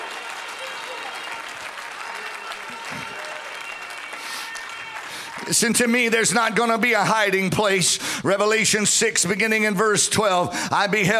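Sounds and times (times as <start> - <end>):
audience clapping: 0.0 - 7.6
speech: 5.4 - 11.1.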